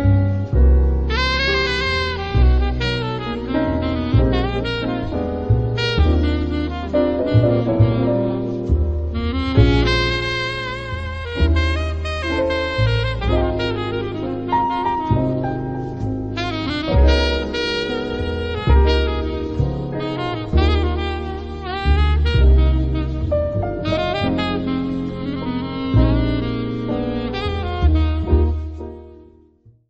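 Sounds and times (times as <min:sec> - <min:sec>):
alto saxophone: 0:00.0 - 0:29.5.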